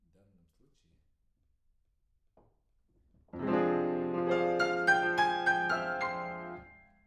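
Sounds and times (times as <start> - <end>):
piano: 3.3 - 7.0.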